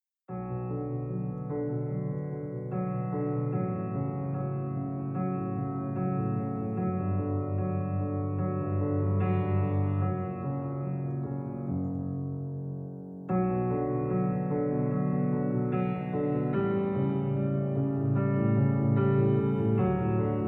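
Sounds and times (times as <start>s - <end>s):
piano piece: 0.3s - 20.4s.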